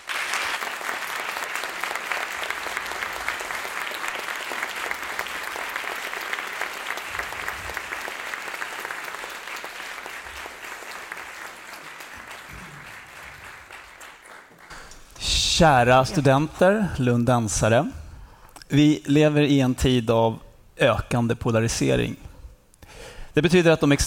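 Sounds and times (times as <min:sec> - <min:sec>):
audience applause: 0:00.0 - 0:15.0
speech: 0:15.6 - 0:18.0, 0:18.7 - 0:22.2, 0:23.4 - 0:24.0.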